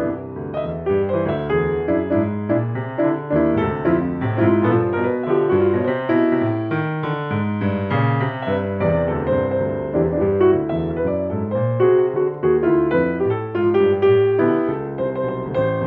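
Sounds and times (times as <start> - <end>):
solo jazz piano: 0.0 - 15.8.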